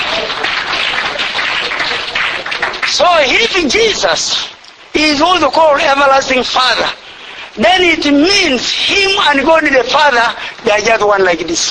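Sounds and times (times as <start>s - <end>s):
church congregation clapping: 0.0s - 4.3s
speech: 3.1s - 7.0s, 7.6s - 11.6s.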